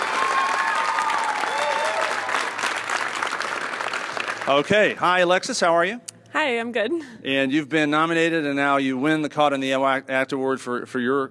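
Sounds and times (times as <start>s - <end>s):
faint whistles and cheers: 0.0s - 2.5s
crowd applause: 0.0s - 5.1s
speech: 4.5s - 11.2s.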